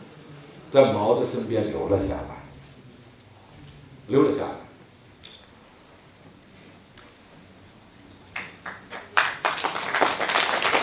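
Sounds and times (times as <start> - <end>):
speech: 0.7 - 2.4, 4.1 - 4.6
audience applause: 8.3 - 10.8.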